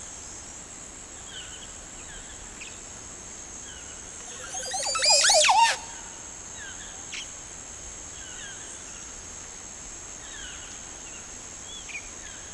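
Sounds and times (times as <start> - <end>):
Montezuma oropendola Psarocolius montezuma song: 4.3 - 6.1.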